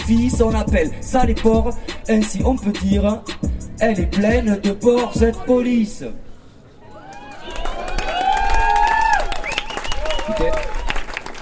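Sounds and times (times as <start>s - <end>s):
speech: 0.1s - 6.2s
crowd voices and cheering: 6.8s - 11.4s
sustained audience applause: 7.1s - 11.4s.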